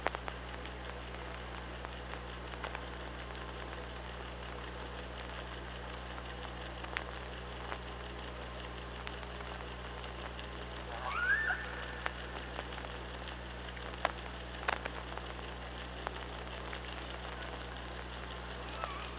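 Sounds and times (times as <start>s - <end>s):
sparse clicks: 0.0s - 19.1s
steady low hum: 0.0s - 19.1s
killer whale calling: 10.9s - 12.6s.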